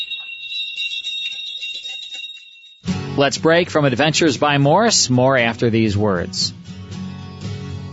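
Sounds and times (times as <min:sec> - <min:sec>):
many small bells on ponies' necks jingling as a pack train passes: 0:00.0 - 0:05.0
speech: 0:03.2 - 0:06.6.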